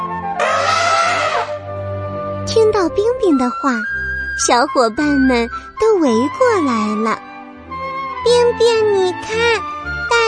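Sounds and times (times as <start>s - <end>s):
elephant trumpeting: 0.4s - 1.6s
speech: 2.6s - 7.3s, 8.2s - 10.2s.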